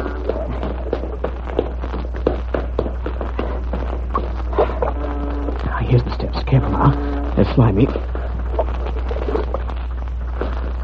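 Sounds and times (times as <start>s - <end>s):
people running across a ship's deck: 0.0s - 4.7s
low hum: 0.0s - 10.8s
speech: 6.5s - 8.2s.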